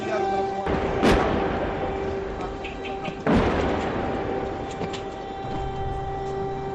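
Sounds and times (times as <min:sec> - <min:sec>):
air-raid sirens in war: 0:00.0 - 0:06.7
bombing in war: 0:00.6 - 0:06.7.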